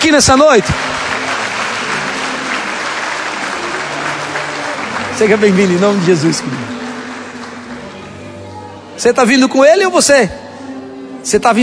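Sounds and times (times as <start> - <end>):
speech: 0.0 - 1.0, 5.2 - 6.8, 9.0 - 10.4, 11.2 - 11.6
crowd applause: 0.0 - 8.6.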